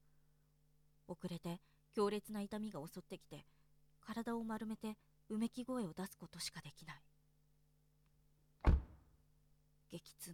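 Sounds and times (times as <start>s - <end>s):
speech: 1.1s - 7.1s, 9.9s - 10.3s
car door closing: 8.6s - 9.0s.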